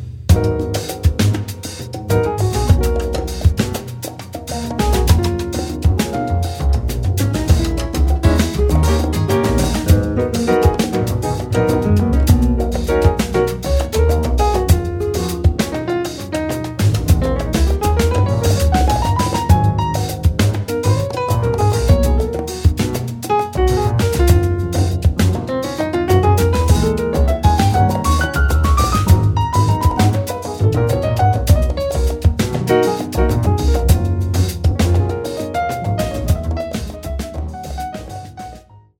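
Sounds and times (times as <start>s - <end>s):
Latin piano music excerpt: 0.3s - 38.9s.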